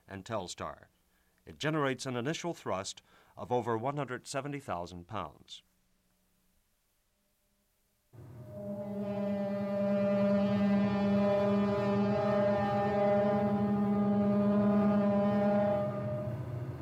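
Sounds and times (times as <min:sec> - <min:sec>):
speech: 0:00.1 - 0:05.7
launch pad warning horn blaring: 0:08.2 - 0:16.7.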